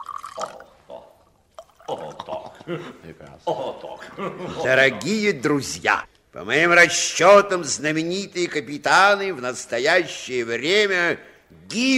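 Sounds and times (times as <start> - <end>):
drinks poured into glasses: 0.0 - 0.8, 1.5 - 2.0
laughter: 1.8 - 5.2
speech: 1.9 - 11.9.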